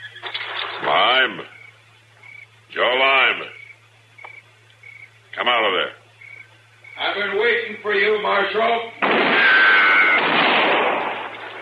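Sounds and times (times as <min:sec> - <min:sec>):
thin whine: 0:00.0 - 0:11.6
speech: 0:01.1 - 0:01.6, 0:02.8 - 0:03.6, 0:05.4 - 0:06.0, 0:07.0 - 0:09.3
gunshot in a radio western drama: 0:09.0 - 0:11.6.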